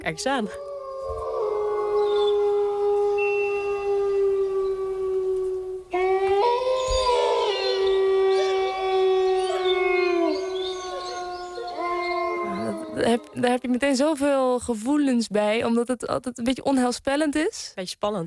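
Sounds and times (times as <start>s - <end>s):
speech: 0.0s - 1.3s, 13.4s - 18.2s
wolf howling: 0.1s - 13.5s.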